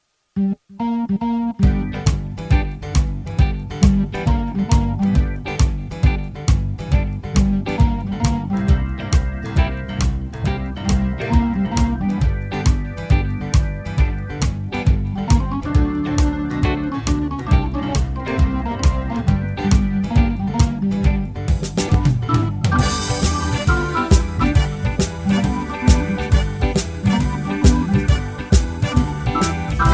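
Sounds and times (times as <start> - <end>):
signature tune: 0.4 - 6.2, 7.2 - 29.9.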